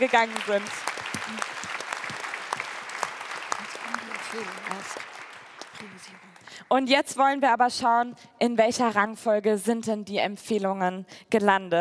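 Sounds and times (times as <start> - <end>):
speech: 0.0 - 1.6, 4.3 - 5.1, 5.8 - 11.8
audience applause: 0.0 - 6.6.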